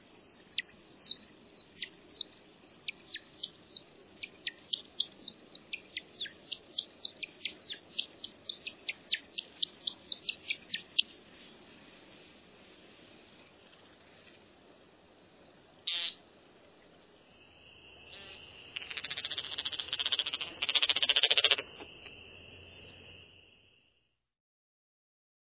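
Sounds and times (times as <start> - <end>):
American woodcock bird calls: 0.6 - 11.2, 15.9 - 16.2, 18.1 - 22.2.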